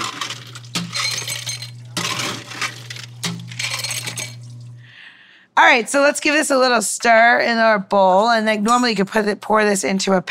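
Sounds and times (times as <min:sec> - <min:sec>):
ice cubes clinking into a glass: 0:00.0 - 0:04.8
low hum: 0:00.0 - 0:05.0
speech: 0:05.6 - 0:10.2.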